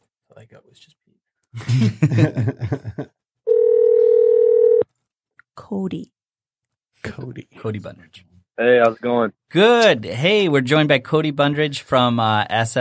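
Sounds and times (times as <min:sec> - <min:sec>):
speech: 0:00.4 - 0:03.1, 0:05.8 - 0:06.2, 0:07.0 - 0:12.7
laughter: 0:01.6 - 0:03.2
telephone dial tone on a call being placed: 0:03.5 - 0:04.8.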